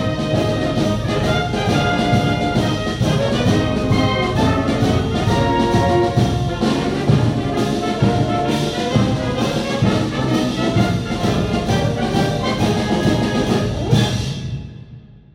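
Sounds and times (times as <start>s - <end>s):
drum roll with reverb: 0.0s - 15.3s.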